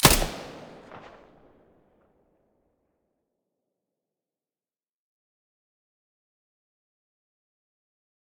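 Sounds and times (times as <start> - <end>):
P90 firing with silencer: 0.0 - 1.6.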